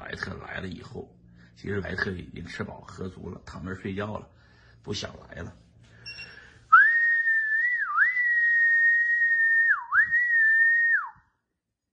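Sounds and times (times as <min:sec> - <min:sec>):
speech: 0:00.1 - 0:05.6
whistling to call dogs: 0:06.1 - 0:11.3.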